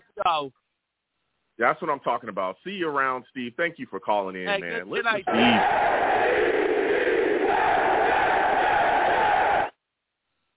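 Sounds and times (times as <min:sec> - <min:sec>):
speech: 0:00.2 - 0:00.6, 0:01.6 - 0:06.6
studio audience cheering and clapping: 0:05.3 - 0:09.7.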